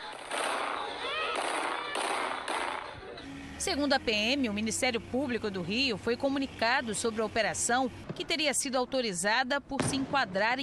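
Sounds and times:
gunshots fired into the air by a woman: 0:00.0 - 0:03.0
speech: 0:03.6 - 0:10.6.

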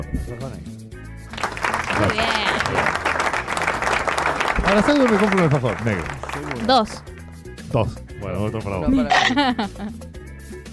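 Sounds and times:
speech: 0:00.0 - 0:00.8, 0:02.0 - 0:02.8, 0:04.7 - 0:07.1, 0:07.7 - 0:10.1
applause: 0:01.3 - 0:07.4
laughter: 0:01.4 - 0:07.0, 0:09.1 - 0:10.0.

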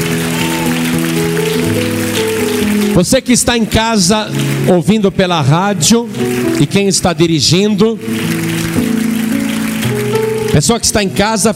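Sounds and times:
church audience applauding: 0:00.0 - 0:11.5
speech: 0:03.0 - 0:08.4, 0:10.6 - 0:11.5.

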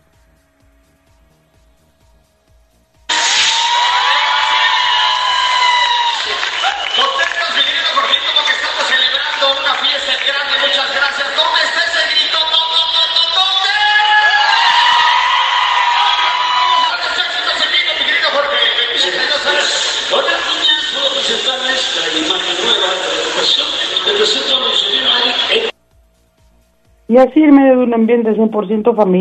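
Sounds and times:
large concert crowd cheering and screaming: 0:03.1 - 0:09.3, 0:13.5 - 0:24.0
concert crowd applauding: 0:03.1 - 0:25.7
speech: 0:28.0 - 0:29.1.

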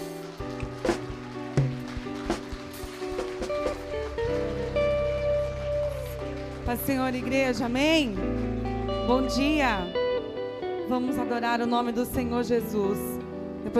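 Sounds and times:
audience applauding: 0:00.0 - 0:09.8
speech: 0:06.7 - 0:08.4, 0:09.1 - 0:10.0, 0:10.9 - 0:13.7.

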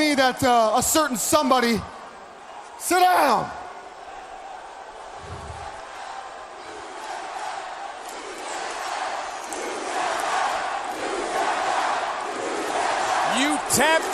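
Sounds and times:
speech: 0:00.0 - 0:02.0, 0:02.8 - 0:03.6, 0:13.7 - 0:14.1
wrestling crowd chanting: 0:03.6 - 0:14.1.

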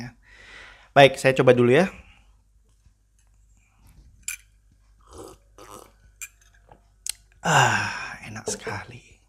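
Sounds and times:
speech: 0:01.0 - 0:02.0, 0:07.4 - 0:09.0
person eating sponge cake: 0:04.2 - 0:07.4
person sipping sweet tea: 0:04.2 - 0:07.7.

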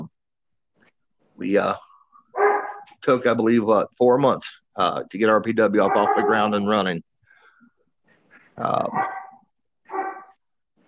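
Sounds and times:
speech: 0:01.4 - 0:01.9, 0:03.0 - 0:07.1, 0:08.6 - 0:09.2
dog barking: 0:02.4 - 0:02.9, 0:05.8 - 0:06.6, 0:08.8 - 0:10.4.

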